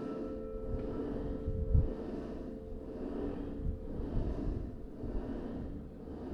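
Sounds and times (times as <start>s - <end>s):
church bell ringing: 0.0s - 6.2s.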